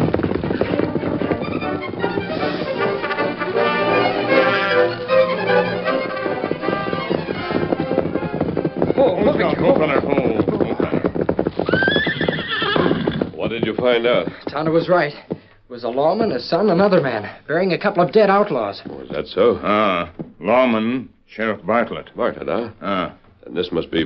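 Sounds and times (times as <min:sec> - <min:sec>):
horse whinnying: 0:00.0 - 0:14.6
horse hooves clip-clopping as riders ride off: 0:00.0 - 0:24.0
speech: 0:13.9 - 0:24.0.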